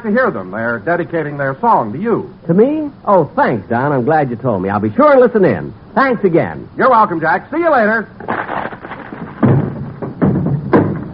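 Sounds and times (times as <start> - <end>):
speech: 0.0 - 8.5
girdle breaking: 8.2 - 11.1.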